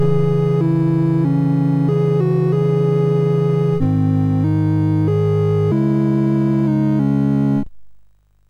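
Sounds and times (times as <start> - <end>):
MOS6581R3 chip game music: 0.0 - 7.7.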